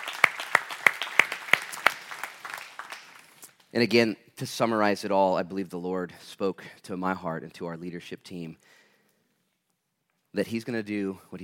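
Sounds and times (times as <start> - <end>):
audience applause: 0.0 - 3.5
sharp evenly spaced claps: 0.0 - 3.7
speech: 3.7 - 8.8, 10.3 - 11.4.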